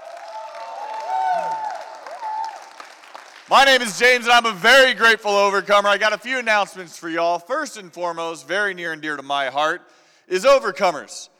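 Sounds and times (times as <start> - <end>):
audience applause: 0.0 - 3.8
speech: 3.5 - 11.3.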